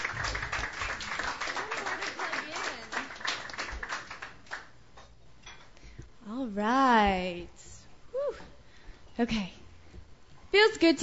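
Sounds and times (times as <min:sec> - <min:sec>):
audience applause welcoming a performer at a Sunday night open mic: 0:00.0 - 0:04.7
speech: 0:06.6 - 0:07.2, 0:09.2 - 0:09.6, 0:10.5 - 0:11.0.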